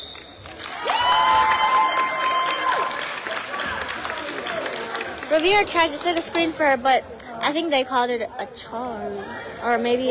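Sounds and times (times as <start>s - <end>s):
basketball fans cheering and clapping: 0.2s - 6.1s
speech: 5.4s - 10.0s.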